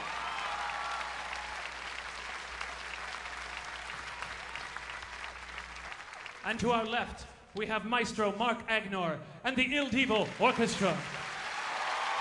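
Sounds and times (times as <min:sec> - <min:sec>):
audience applause: 0:00.0 - 0:06.9, 0:10.2 - 0:12.2
speech: 0:06.4 - 0:11.2.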